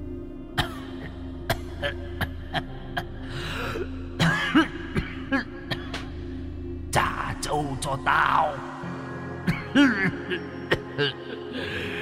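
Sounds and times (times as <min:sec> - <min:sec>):
man coughing hoarsely in the distance: 0:00.6 - 0:03.1, 0:04.2 - 0:06.1, 0:09.4 - 0:11.2
speech: 0:01.8 - 0:03.6, 0:07.8 - 0:08.8, 0:09.8 - 0:11.7.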